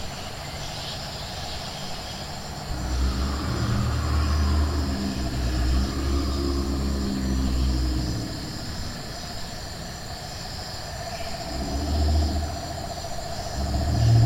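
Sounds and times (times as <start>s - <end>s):
high-pitched chorus of nocturnal animals: 0.0s - 14.2s
low engine-like rumble: 2.6s - 10.1s, 10.9s - 14.2s.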